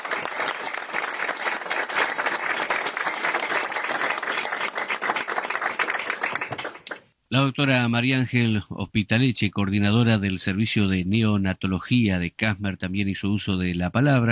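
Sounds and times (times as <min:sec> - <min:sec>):
audience applause: 0:00.0 - 0:07.0
speech: 0:07.4 - 0:14.3.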